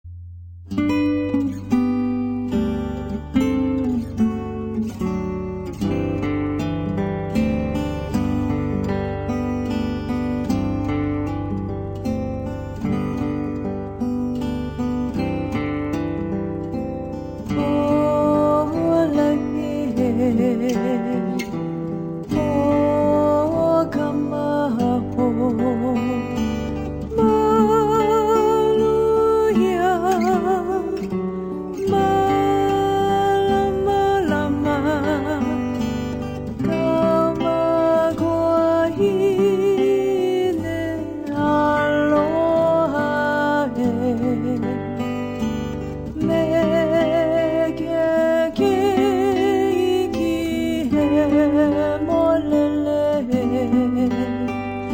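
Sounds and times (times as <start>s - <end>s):
Hawaiian slack key guitar playing a Christmas carol: 0.3s - 54.9s.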